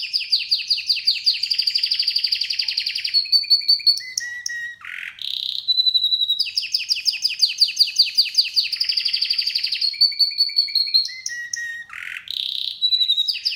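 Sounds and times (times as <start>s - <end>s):
canary song with rapid rolling trills and slurred notes: 0.0s - 13.5s.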